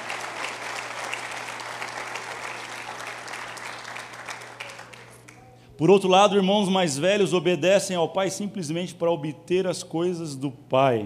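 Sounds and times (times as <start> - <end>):
audience applause: 0.0 - 5.3
speech: 5.8 - 11.0.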